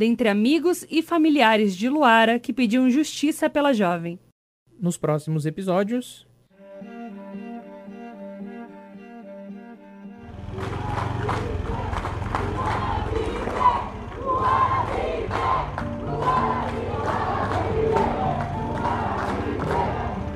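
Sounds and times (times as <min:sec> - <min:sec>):
speech: 0:00.0 - 0:06.3
crowd shouting a protest slogan: 0:10.6 - 0:20.3.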